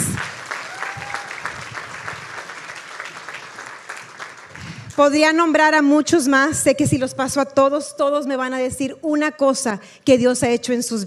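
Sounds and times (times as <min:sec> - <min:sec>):
audience applause: 0:00.0 - 0:04.9
speech: 0:05.0 - 0:11.0.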